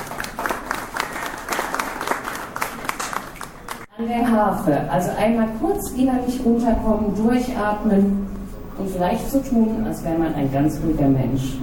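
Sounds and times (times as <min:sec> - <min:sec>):
applause: 0:00.0 - 0:03.9
speech: 0:04.0 - 0:11.6.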